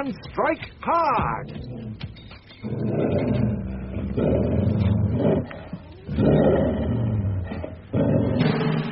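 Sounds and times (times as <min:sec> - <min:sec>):
speech: 0:00.0 - 0:01.8, 0:04.2 - 0:05.3
attacking dogs growling and snarling: 0:01.4 - 0:08.8.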